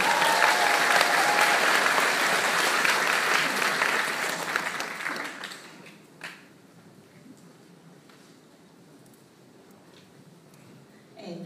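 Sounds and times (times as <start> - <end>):
crowd applause: 0.0 - 6.4.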